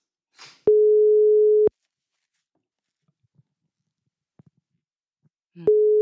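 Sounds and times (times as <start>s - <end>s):
telephone ringback tone: 0.7s - 1.7s.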